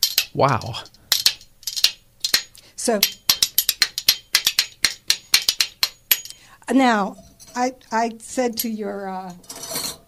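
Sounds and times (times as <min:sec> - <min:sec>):
two matching spoons knocked together as percussion: 0:00.0 - 0:06.4
speech: 0:00.4 - 0:01.0, 0:02.8 - 0:03.2, 0:06.7 - 0:09.5.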